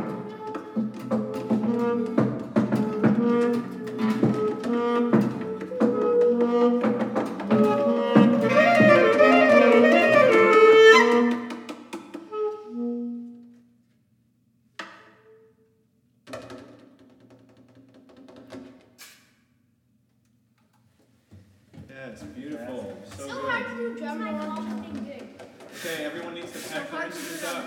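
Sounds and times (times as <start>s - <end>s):
improvised music: 0.0s - 13.7s.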